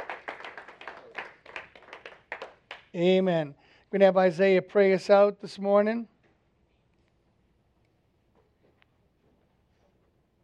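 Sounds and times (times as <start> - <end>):
congregation clapping hands during a church service: 0.0 - 3.0
speech: 2.9 - 6.1.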